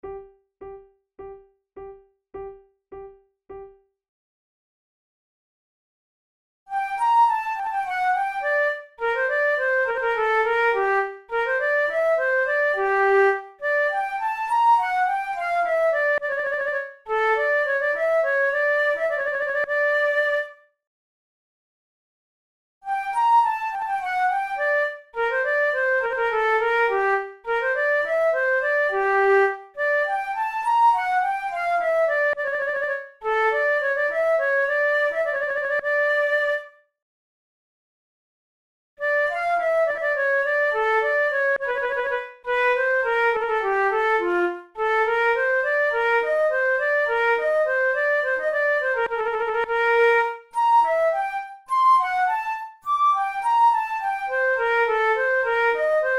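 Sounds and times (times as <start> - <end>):
allemande played on flute: 6.7 - 20.6, 22.9 - 36.8, 39.0 - 56.1.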